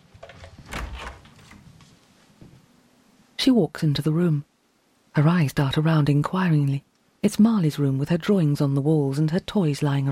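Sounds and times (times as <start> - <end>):
soft clicks and shuffling: 0.0 - 2.7
door opening: 0.1 - 1.7
speech: 3.4 - 4.5, 5.2 - 10.1.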